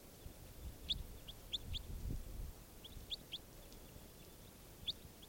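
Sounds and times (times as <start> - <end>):
bird calling: 0.2 - 2.0, 2.7 - 5.2.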